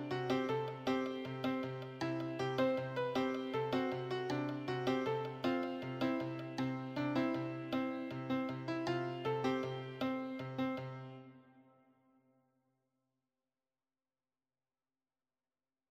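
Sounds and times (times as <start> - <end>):
piano solo: 0.0 - 11.3.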